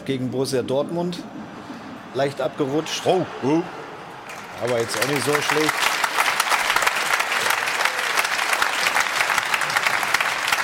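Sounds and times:
speech: 0.0 - 1.4, 2.1 - 3.8, 4.6 - 5.8
studio audience applause: 4.2 - 10.6.

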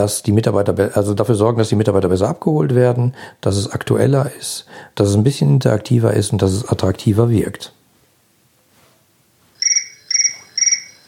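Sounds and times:
speech: 0.0 - 7.8
electronic telephone ringing: 9.6 - 11.0.

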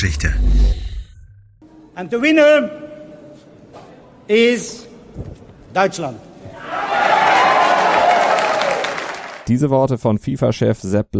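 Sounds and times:
speech: 0.0 - 0.9, 2.0 - 2.8, 4.3 - 6.8, 9.5 - 11.1
crowd cheering in Germany at winning the 2006 World Cup bid: 6.5 - 9.5.

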